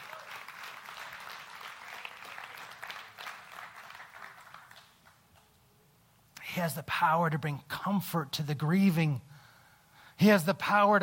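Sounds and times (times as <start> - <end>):
audience applause: 0.0 - 5.2
speech: 6.6 - 9.3, 10.2 - 11.0.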